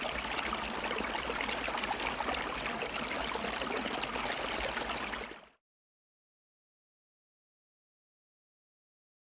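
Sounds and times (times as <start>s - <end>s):
creek stream flowing: 0.0s - 5.4s.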